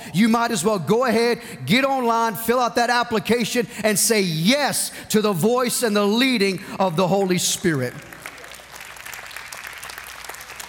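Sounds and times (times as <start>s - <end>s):
speech: 0.1s - 8.2s
weak audience clapping: 7.7s - 10.6s.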